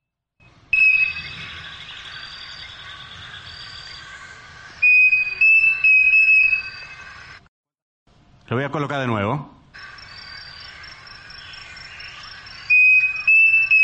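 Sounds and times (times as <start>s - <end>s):
bird singing pure whistled notes: 0.5s - 4.0s, 4.8s - 7.1s, 9.8s - 13.8s
speech: 8.5s - 9.6s.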